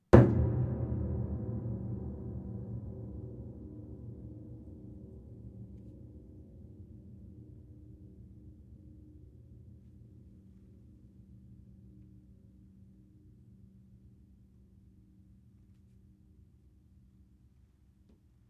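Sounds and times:
piano hits with mallet: 0.1 - 6.2.

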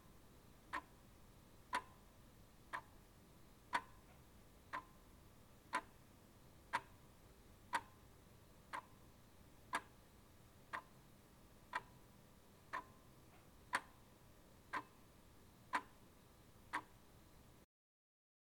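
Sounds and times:
clock ticking: 0.7 - 1.0, 1.7 - 2.1, 2.7 - 3.0, 3.7 - 5.1, 5.7 - 6.0, 6.7 - 7.0, 7.7 - 8.0, 8.7 - 9.0, 9.7 - 10.0, 10.7 - 11.0, 11.7 - 12.1, 12.7 - 13.1, 13.7 - 14.1, 14.7 - 15.0, 15.7 - 16.0, 16.7 - 17.0.

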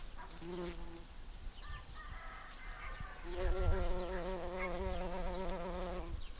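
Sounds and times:
bumblebee buzzing: 0.3 - 1.1, 3.2 - 6.3.

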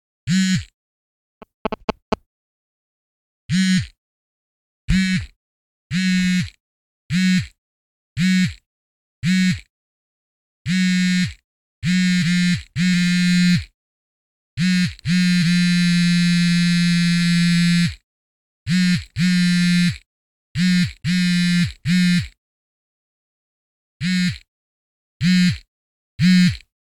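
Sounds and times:
audio feedback: 1.4 - 2.2
cell phone vibrating oddly: 1.4 - 2.2, 3.5 - 4.0, 4.9 - 7.6, 8.2 - 8.6, 9.2 - 9.7, 10.7 - 13.8, 14.6 - 18.0, 18.7 - 22.4, 24.0 - 24.5, 25.2 - 26.7.

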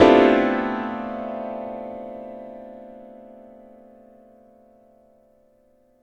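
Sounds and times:
piano slam: 0.0 - 3.7.

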